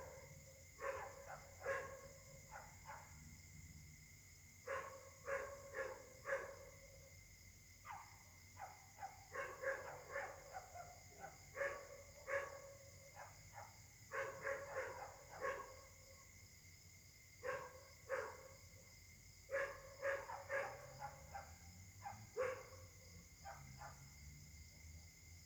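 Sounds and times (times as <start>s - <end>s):
dog barking: 0.0s - 3.2s, 4.7s - 6.8s, 7.8s - 16.1s, 17.4s - 18.6s, 19.5s - 24.1s.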